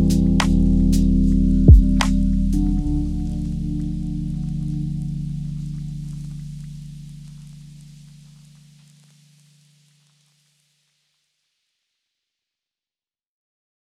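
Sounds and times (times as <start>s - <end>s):
lofi hip hop: 0.0s - 4.8s.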